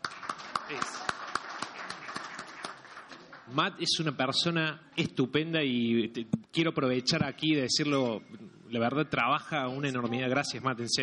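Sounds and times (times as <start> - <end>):
audience applause: 0.0 - 3.6
speech: 0.7 - 1.1, 3.5 - 11.0.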